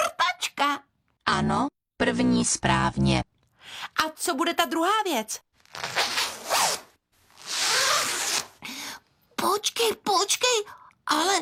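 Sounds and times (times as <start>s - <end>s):
speech: 1.4s - 6.0s, 9.5s - 11.4s
clothing zipper being zipped: 5.6s - 8.6s.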